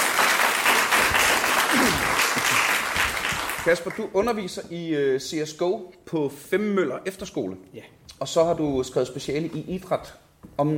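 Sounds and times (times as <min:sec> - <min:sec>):
audience applauding to welcome a guest to a panel discussion on e-sports: 0:00.0 - 0:04.1
speech: 0:03.6 - 0:10.7.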